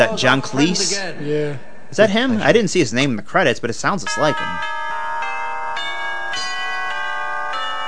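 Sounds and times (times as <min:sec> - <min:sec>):
speech: 0:00.0 - 0:04.7
clock bells chiming a tune: 0:04.1 - 0:07.8.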